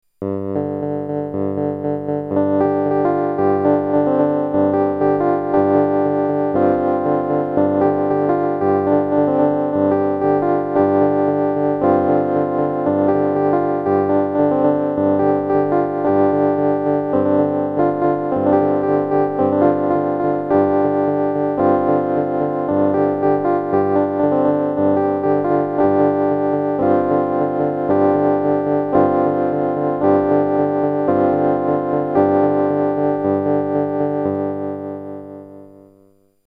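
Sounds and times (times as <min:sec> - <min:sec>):
piano: 0:00.2 - 0:36.4.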